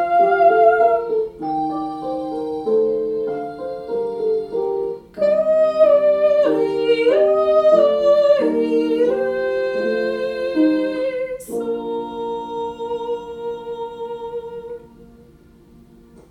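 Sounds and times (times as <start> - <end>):
soprano singing a Kyrie: 0.0 - 15.4
choir singing: 5.2 - 14.7.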